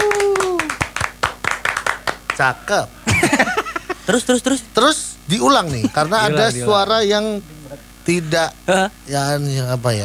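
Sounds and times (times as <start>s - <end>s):
whoop: 0.0s - 0.8s
people clapping hands: 0.0s - 2.6s
speech: 2.4s - 10.0s
laughter: 3.0s - 4.4s, 5.6s - 6.9s.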